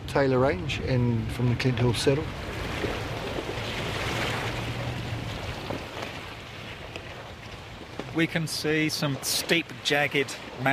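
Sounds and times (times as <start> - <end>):
speech: 0.2 - 3.0, 8.2 - 10.7
river water flowing: 0.6 - 10.7.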